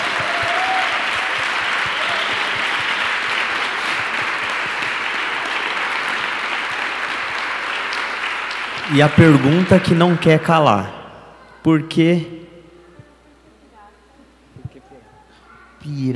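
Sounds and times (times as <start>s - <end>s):
audience applause: 0.0s - 11.0s
speech: 8.9s - 11.0s, 11.6s - 12.4s.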